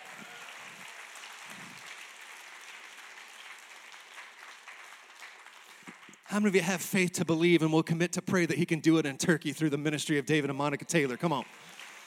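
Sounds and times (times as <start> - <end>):
audience clapping: 0.0 - 7.2, 10.4 - 12.0
speech: 6.3 - 11.8.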